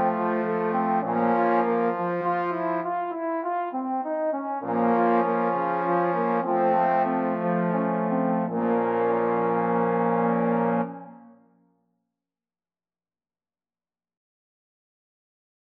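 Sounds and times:
trombone quartet playing a classical piano piece: 0:00.0 - 0:11.2.

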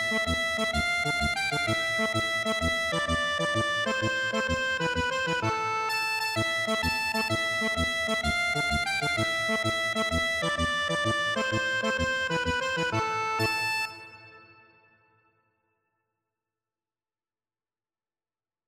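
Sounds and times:
accordion playing a tarantella: 0:00.0 - 0:14.8.

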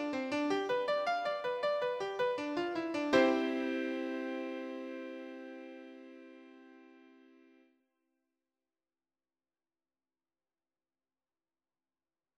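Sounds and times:
guitar and keyboard playing a prelude: 0:00.0 - 0:07.6.

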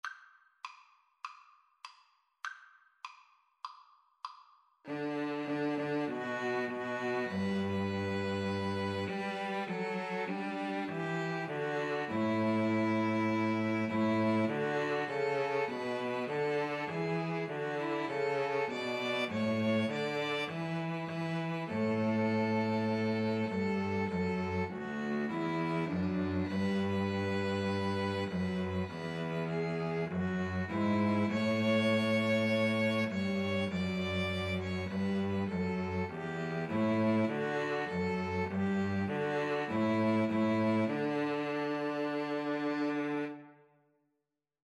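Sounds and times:
string trio playing: 0:04.9 - 0:43.6.

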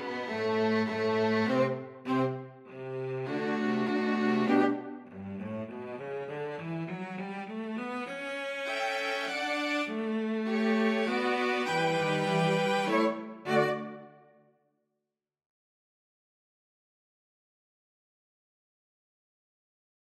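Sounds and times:
string quartet: 0:00.0 - 0:14.2.

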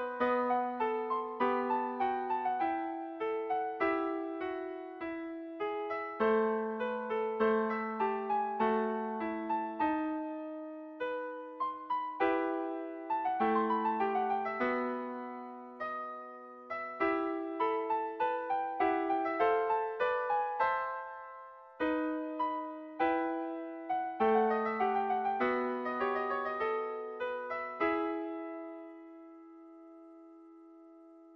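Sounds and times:
concerto second movement played on piano: 0:00.0 - 0:31.3.

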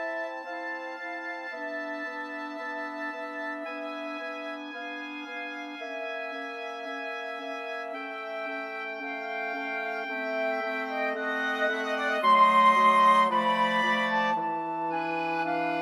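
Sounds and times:
flexible mixed ensemble of 4 players: 0:07.8 - 0:15.8.

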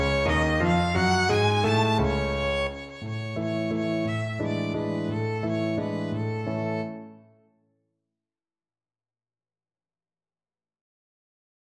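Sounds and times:
violin playing German dance music: 0:00.0 - 0:07.1.

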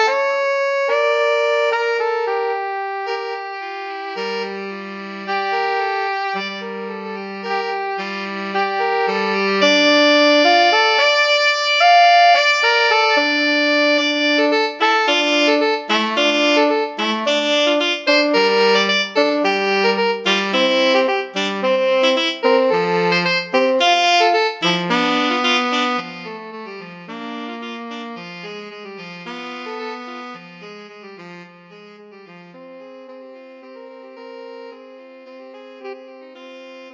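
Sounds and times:
alto saxophone and tenor saxophone duet: 0:00.0 - 0:36.9.

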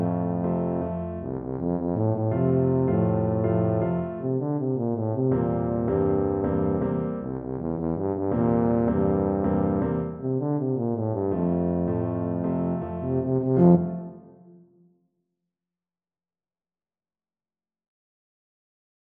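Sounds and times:
tuba playing a folk tune: 0:00.0 - 0:14.5.

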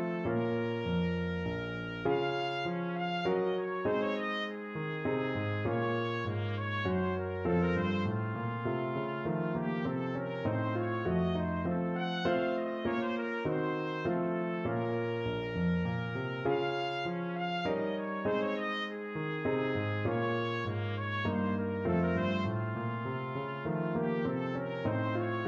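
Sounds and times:
trumpet playing a minuet in D minor: 0:00.0 - 0:25.4.

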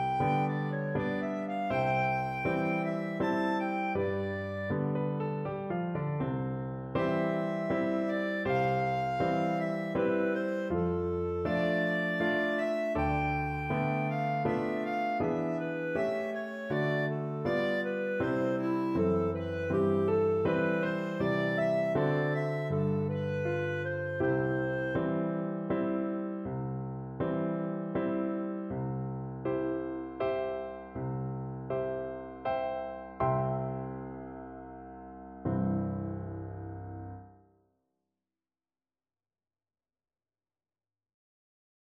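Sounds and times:
clarinet: 0:00.0 - 0:26.6
piano: 0:00.0 - 0:37.6.

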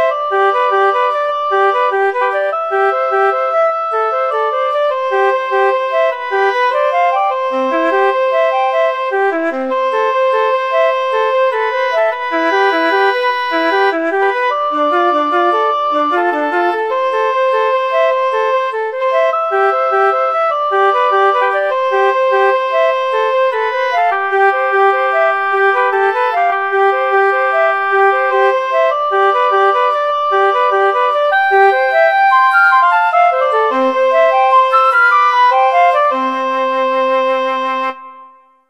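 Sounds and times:
flute in a flute and oboe duet: 0:00.0 - 0:38.6
oboe in a flute and oboe duet: 0:00.0 - 0:38.6.

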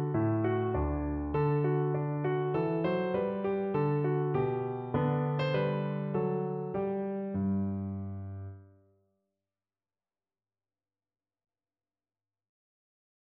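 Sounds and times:
piano minuet: 0:00.0 - 0:08.8.

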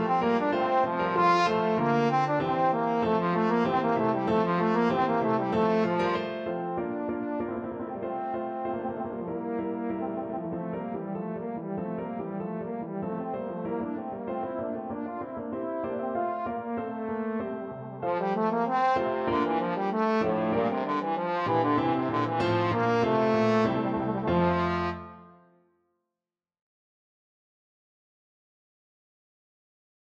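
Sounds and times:
trombone sonata: 0:00.0 - 0:25.4.

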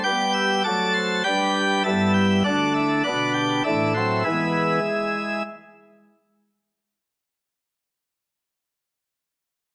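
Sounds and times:
organ playing a carol: 0:00.0 - 0:06.0.

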